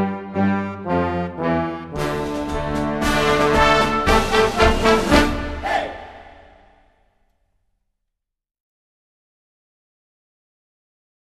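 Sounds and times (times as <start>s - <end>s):
marching song: 0.0s - 6.9s.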